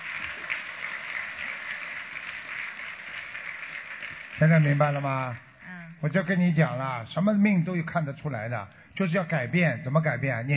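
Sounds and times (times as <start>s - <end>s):
crowd applause: 0.0s - 5.4s
speech: 4.4s - 10.5s.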